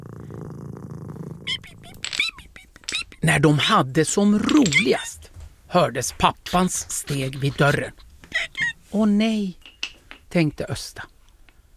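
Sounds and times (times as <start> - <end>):
cat purring while being petted: 0.0 - 2.0
speech: 3.2 - 8.1, 8.9 - 9.6, 10.3 - 11.1.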